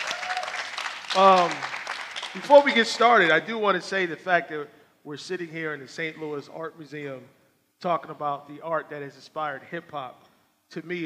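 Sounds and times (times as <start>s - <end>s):
crowd applauding: 0.0s - 3.2s
speech: 1.2s - 1.6s, 2.3s - 11.0s.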